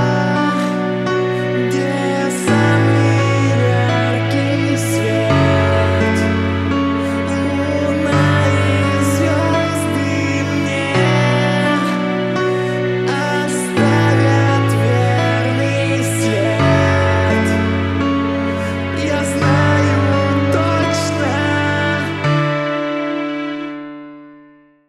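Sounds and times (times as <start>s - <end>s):
acoustic cover: 0.0s - 24.7s.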